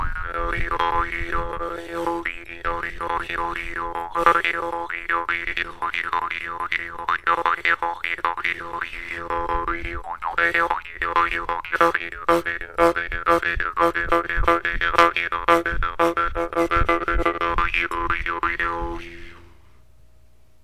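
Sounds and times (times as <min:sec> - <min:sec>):
bright jaw harp: 0:00.0 - 0:19.6.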